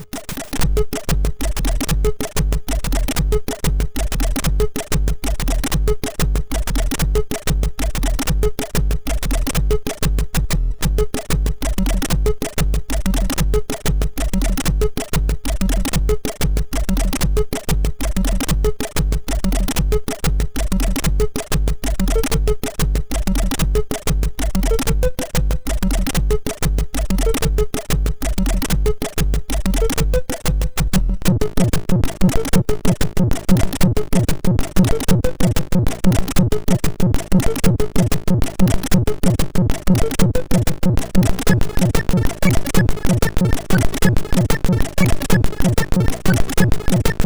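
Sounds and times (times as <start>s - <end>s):
jungle beat on a MOS6581R2 sound chip: 0.6s - 47.2s.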